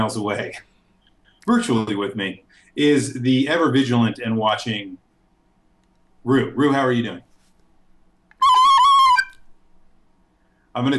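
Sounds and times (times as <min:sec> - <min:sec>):
speech: 0:00.0 - 0:00.7, 0:01.4 - 0:05.0, 0:06.2 - 0:07.3, 0:10.8 - 0:10.9
recorder played like a penny whistle, short breathy phrase of high notes: 0:08.3 - 0:09.4.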